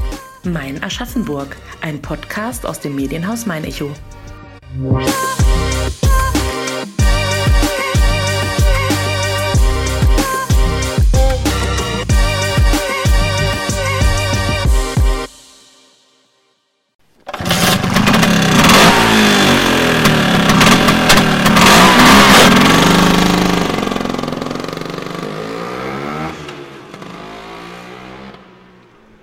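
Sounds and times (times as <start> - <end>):
speech: 0.4 - 5.4
short musical snippet: 2.9 - 16.2
Vespa scooter engine revving: 17.3 - 29.2.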